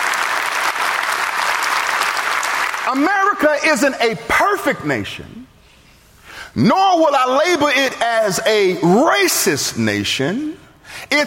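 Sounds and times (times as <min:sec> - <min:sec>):
audience clapping: 0:00.0 - 0:03.4
speech: 0:02.9 - 0:05.5, 0:06.6 - 0:11.2.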